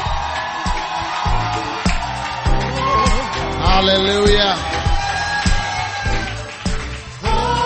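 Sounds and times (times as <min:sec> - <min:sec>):
church crowd cheering and whooping to welcome a bishop: 0:00.0 - 0:07.5
speech: 0:03.8 - 0:04.8.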